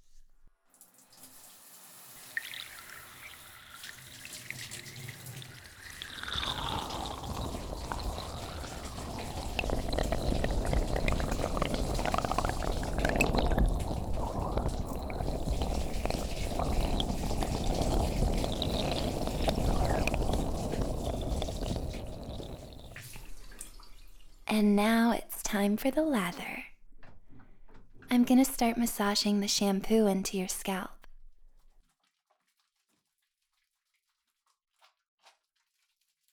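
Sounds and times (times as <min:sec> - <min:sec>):
running water rinsing a person's hair during a shampoo: 0:00.8 - 0:24.4
speech: 0:24.6 - 0:26.6, 0:28.2 - 0:31.0.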